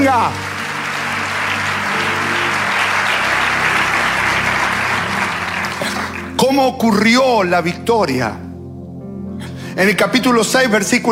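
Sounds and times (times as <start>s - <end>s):
speech: 0.0s - 0.5s, 6.4s - 8.4s, 9.8s - 11.0s
audience applause: 0.0s - 6.5s.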